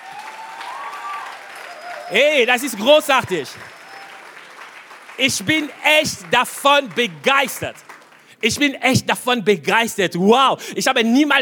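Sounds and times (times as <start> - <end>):
strong applause: 0.0 - 9.1
speech: 2.1 - 3.8, 5.2 - 11.3.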